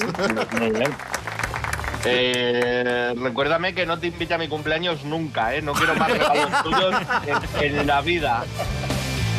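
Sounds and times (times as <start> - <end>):
laughter: 0.0 - 1.1, 5.7 - 9.2
audience applause: 0.0 - 2.8
speech: 0.2 - 1.1, 2.0 - 8.9.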